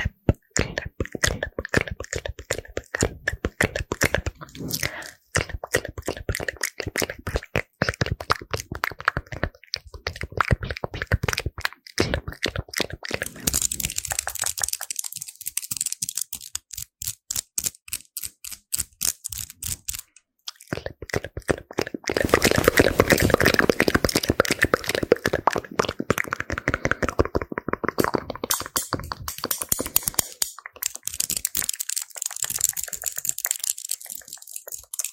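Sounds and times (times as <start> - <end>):
fast aggressive ASMR mouth sounds: 0.0 - 15.0, 20.5 - 30.9.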